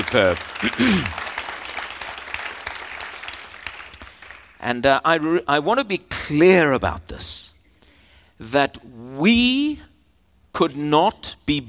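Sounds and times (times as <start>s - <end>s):
audience applause: 0.0s - 4.5s
speech: 0.1s - 1.2s, 4.6s - 7.5s, 8.4s - 9.9s, 10.6s - 11.6s.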